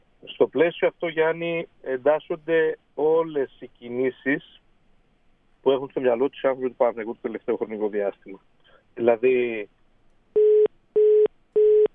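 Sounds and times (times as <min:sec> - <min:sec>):
speech: 0:00.2 - 0:04.6, 0:05.6 - 0:09.8
telephone busy tone after a dropped call: 0:10.4 - 0:11.9.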